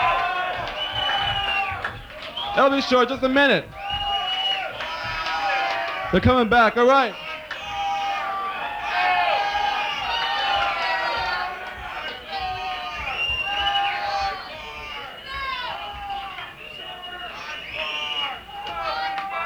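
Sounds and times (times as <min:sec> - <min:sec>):
crowd cheering and whooping: 0:00.0 - 0:19.4
speech: 0:02.6 - 0:03.8, 0:06.1 - 0:07.2.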